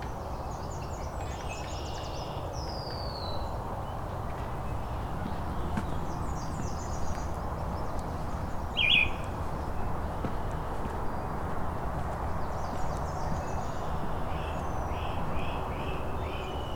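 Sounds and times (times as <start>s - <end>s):
steady outdoor noise: 0.0s - 16.7s
great crested flycatcher calling: 8.8s - 9.2s.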